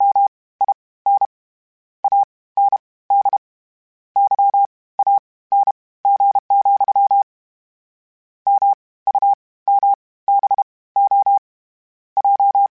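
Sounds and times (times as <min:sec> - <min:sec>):
Morse code beeps: 0:00.0 - 0:01.3, 0:02.0 - 0:03.4, 0:04.2 - 0:07.3, 0:08.5 - 0:11.4, 0:12.2 - 0:12.7.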